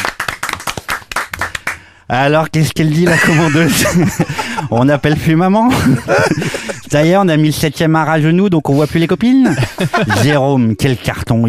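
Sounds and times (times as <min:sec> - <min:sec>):
audience applauding: 0:00.0 - 0:01.8
speech: 0:02.1 - 0:11.4
laughter: 0:03.0 - 0:06.9, 0:09.3 - 0:10.8.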